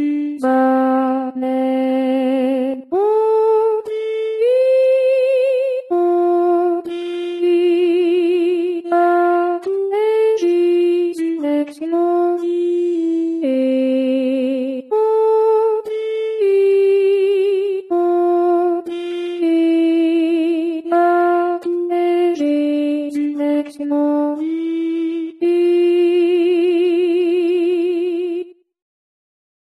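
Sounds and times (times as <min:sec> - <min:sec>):
alto voices singing a choral piece: 0:00.0 - 0:28.6.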